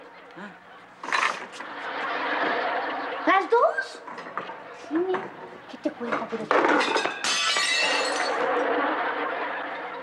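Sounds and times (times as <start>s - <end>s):
speech: 0.4s - 0.7s, 4.9s - 7.2s
laughter: 0.8s - 4.9s, 7.8s - 10.0s
ceramic and glass dishes crashing and shattering: 6.5s - 8.6s.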